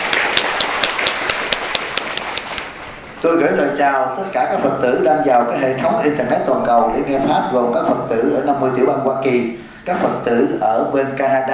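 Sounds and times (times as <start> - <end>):
audience at a Buddhist Dharma gathering in Indio, California applauding: 0.0 - 3.0
speech: 3.2 - 11.5.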